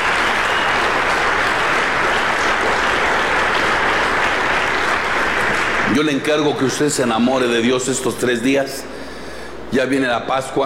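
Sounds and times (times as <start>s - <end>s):
audience applause: 0.0s - 6.7s
speech: 6.0s - 8.9s, 9.7s - 10.6s.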